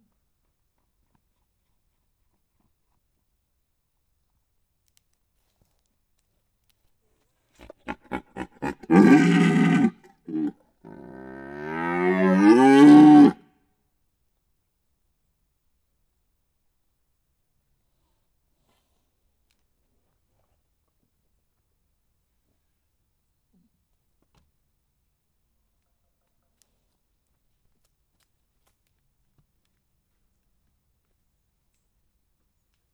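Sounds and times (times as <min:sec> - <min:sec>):
red deer: 0:07.6 - 0:13.4.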